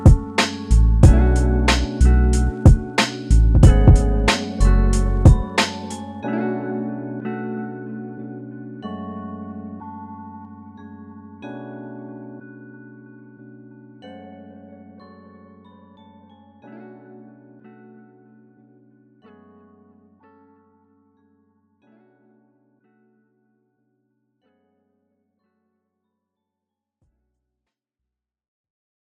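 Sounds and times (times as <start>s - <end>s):
rap music: 0.0s - 6.2s.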